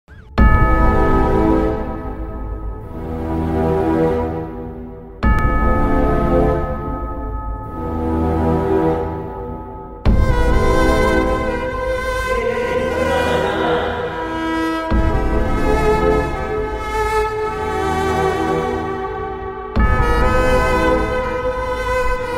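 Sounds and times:
sad background music: 0.4 - 22.3
laughter: 12.3 - 14.6.

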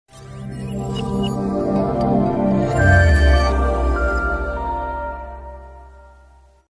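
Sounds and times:
ringtone song: 0.1 - 6.4.

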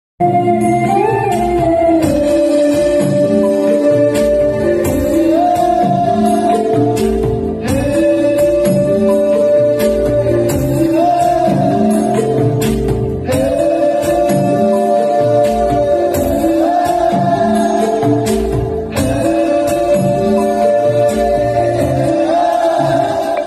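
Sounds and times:
entry background music: 0.2 - 23.4.

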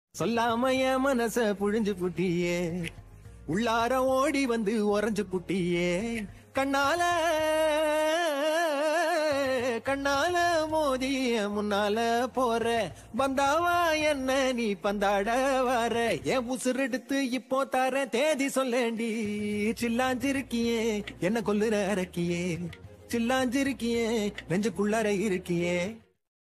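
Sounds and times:
song: 0.2 - 17.4, 18.3 - 26.2.

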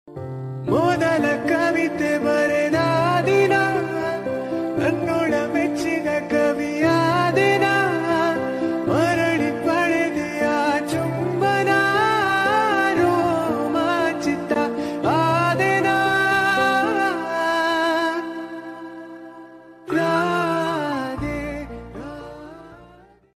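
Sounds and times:
Kannada love song: 0.1 - 23.3.

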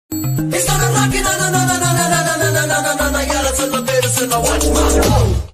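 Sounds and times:
film song background music ringtone: 0.1 - 5.4.

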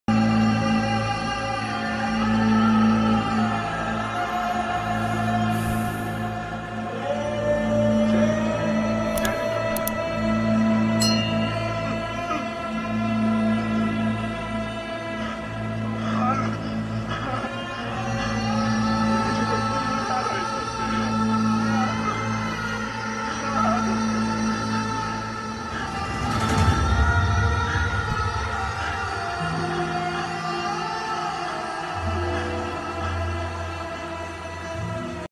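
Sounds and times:
sad interval background music ringtone: 0.1 - 35.2.

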